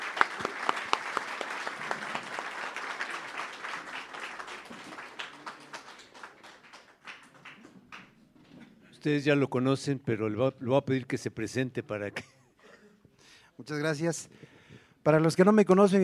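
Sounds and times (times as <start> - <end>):
audience applause at a community gathering: 0.0 - 8.1
speech: 9.0 - 12.3, 13.7 - 16.0.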